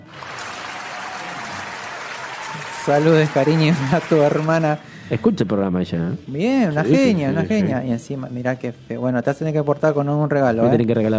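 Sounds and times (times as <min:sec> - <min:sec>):
applause: 0:00.0 - 0:05.0
speech: 0:02.5 - 0:11.1.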